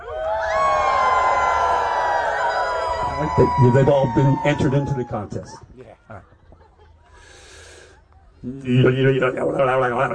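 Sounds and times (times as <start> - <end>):
crowd imitating a full moon howl: 0.0 - 5.6
speech: 3.3 - 6.3, 8.4 - 10.1.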